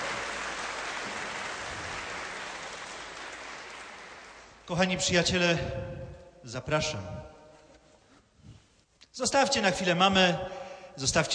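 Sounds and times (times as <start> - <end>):
audience applause for a band: 0.0 - 4.6
speech: 4.7 - 7.3, 9.2 - 11.3.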